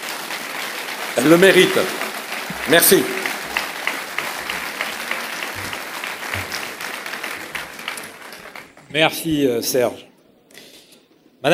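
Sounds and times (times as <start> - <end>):
crowd applause: 0.0 - 9.4
speech: 1.2 - 2.0, 2.6 - 3.2, 8.9 - 10.1.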